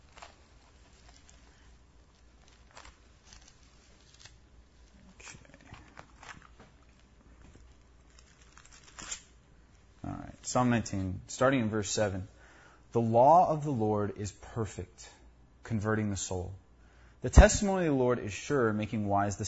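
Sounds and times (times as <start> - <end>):
people turning the pages of their books: 0.0 - 9.9
speech: 10.5 - 16.6, 17.2 - 19.4.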